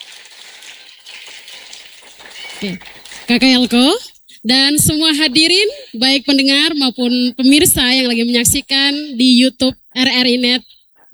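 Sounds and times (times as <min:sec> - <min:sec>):
audience applause: 0:00.0 - 0:04.1
speech: 0:02.6 - 0:11.1.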